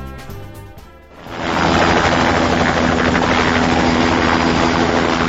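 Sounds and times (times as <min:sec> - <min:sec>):
rescue helicopter rotor and engine: 0:01.1 - 0:05.2.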